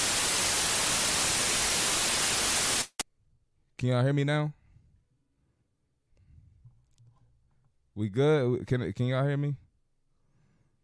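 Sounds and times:
static noise on the audio line: 0.0s - 3.0s
speech: 3.8s - 4.6s, 8.0s - 9.6s.

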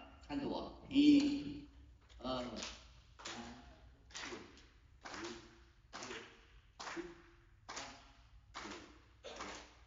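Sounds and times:
speech: 0.3s - 1.6s
audience clapping hands together: 2.5s - 9.8s.

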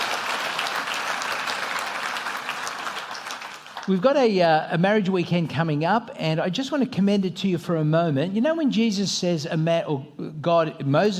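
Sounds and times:
applause: 0.0s - 4.0s
speech: 3.9s - 11.1s.

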